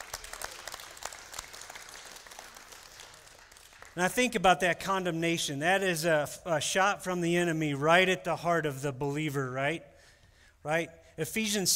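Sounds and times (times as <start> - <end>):
audience applauding: 0.0 - 4.1
speech: 4.0 - 9.9, 10.6 - 11.7.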